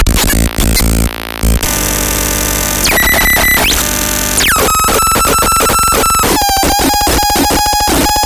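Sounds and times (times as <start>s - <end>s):
circuit-bent Game Boy pulse noise: 0.1s - 8.2s.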